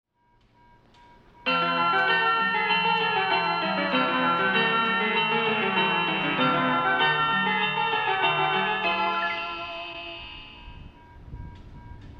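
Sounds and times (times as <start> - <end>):
melody: 1.5 - 11.2.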